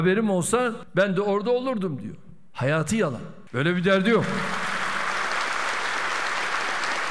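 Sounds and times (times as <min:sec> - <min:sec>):
speech: 0:00.0 - 0:04.6
sustained applause from a large audience in an indoor hall: 0:04.1 - 0:07.1.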